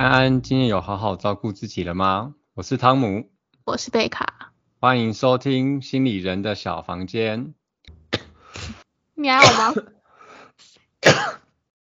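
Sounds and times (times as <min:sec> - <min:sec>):
speech: 0:00.0 - 0:10.0
person coughing: 0:09.4 - 0:09.9, 0:11.0 - 0:11.4.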